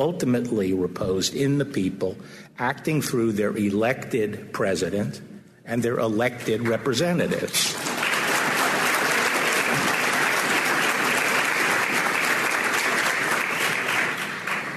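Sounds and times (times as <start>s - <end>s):
speech: 0.0s - 7.9s
large audience applause during speech: 7.7s - 14.7s.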